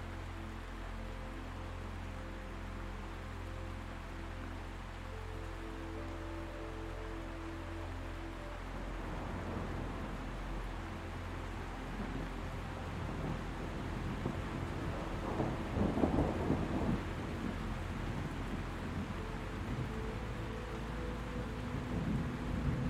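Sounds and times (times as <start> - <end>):
soft music of low sustained tones: 0.0 - 22.8
steady rain patter: 0.0 - 22.8
thunder rolling: 14.0 - 19.1.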